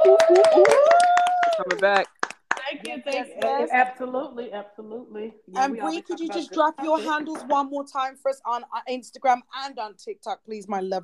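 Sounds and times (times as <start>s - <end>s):
voices whooping and cheering: 0.0s - 2.0s
audience applause: 0.0s - 2.8s
speech: 1.8s - 2.2s, 2.8s - 11.0s.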